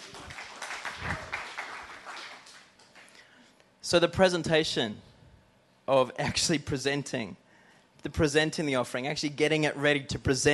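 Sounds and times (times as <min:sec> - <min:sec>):
audience applause: 0:00.0 - 0:03.1
speech: 0:03.9 - 0:05.1, 0:05.9 - 0:07.4, 0:08.0 - 0:10.5.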